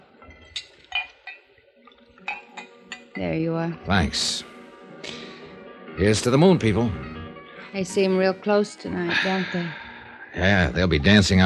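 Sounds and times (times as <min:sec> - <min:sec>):
glassy clinks of a drink being poured into a glass: 0:00.3 - 0:01.5, 0:02.2 - 0:03.4
speech: 0:03.2 - 0:04.5, 0:06.0 - 0:07.1, 0:07.7 - 0:09.8, 0:10.4 - 0:11.4.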